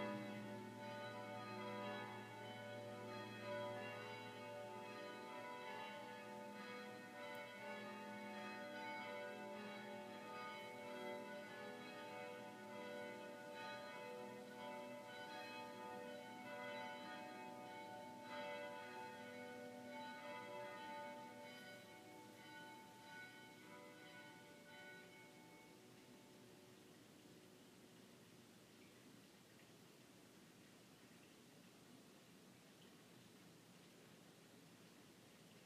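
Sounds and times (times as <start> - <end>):
bells ringing in Charleston: 0.0 - 26.3.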